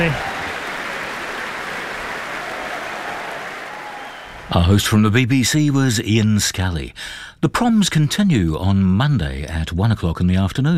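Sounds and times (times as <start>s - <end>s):
speech: 0.0s - 0.3s, 4.5s - 10.7s
concert audience applause for orchestra: 0.0s - 4.8s.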